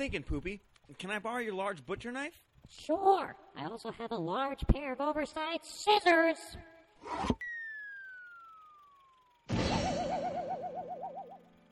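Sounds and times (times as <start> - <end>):
speech: 0.0 - 7.5
long descending whistle of a falling giant grand piano: 7.1 - 11.7
giant grand piano crashing onto a man's head: 9.5 - 10.4.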